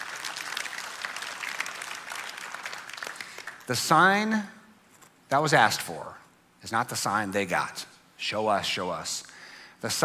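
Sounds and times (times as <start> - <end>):
audience applauding: 0.0 - 3.8
speech: 3.7 - 4.6, 5.3 - 10.0.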